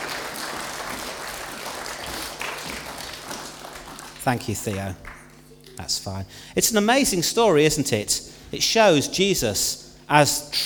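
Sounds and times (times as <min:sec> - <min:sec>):
audience applause: 0:00.0 - 0:05.3
speech: 0:04.2 - 0:05.1, 0:05.8 - 0:10.6.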